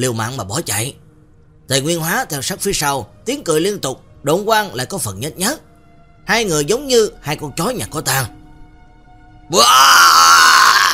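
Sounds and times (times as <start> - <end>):
speech: 0.0 - 1.0, 1.7 - 5.7, 6.3 - 8.4, 9.5 - 10.1
angry roaring shout: 9.5 - 10.9.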